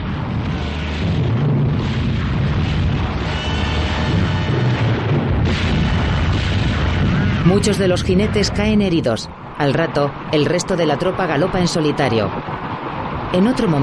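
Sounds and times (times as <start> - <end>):
battlefield cannon fire: 0.0 - 8.6
battlefield rifle fire: 0.4 - 7.7
speech: 7.5 - 13.8.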